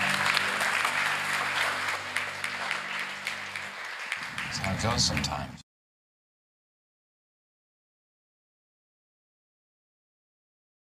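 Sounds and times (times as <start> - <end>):
audience clapping hands: 0.0 - 5.6
speech: 4.7 - 5.6.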